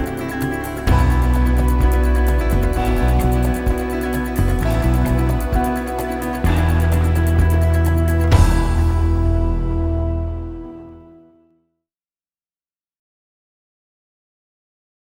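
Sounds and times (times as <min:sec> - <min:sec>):
haunting sound: 0:00.0 - 0:11.2.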